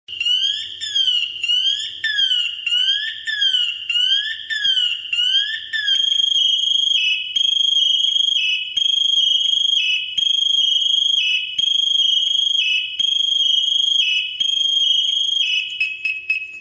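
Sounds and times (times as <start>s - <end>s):
alarm: 0.1s - 16.6s.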